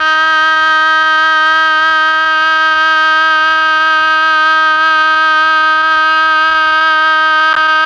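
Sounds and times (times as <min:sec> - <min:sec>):
MEL oboe sound: 0:00.0 - 0:07.8.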